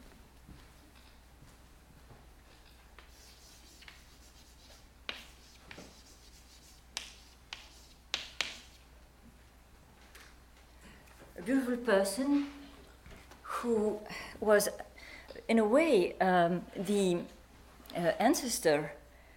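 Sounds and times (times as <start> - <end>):
handwriting as a name is written by hand: 3.0 - 8.8
speech: 11.5 - 12.6, 13.6 - 14.9, 15.5 - 17.4, 18.0 - 19.0.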